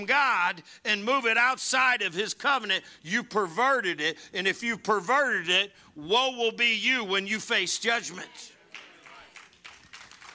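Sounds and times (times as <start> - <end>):
speech: 0.0 - 8.5
golf clap, quiet polite clapping: 8.7 - 10.3.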